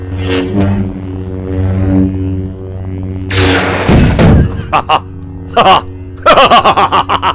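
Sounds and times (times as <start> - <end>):
steady buzzing hum: 0.0 - 7.3
laughter: 4.4 - 7.3.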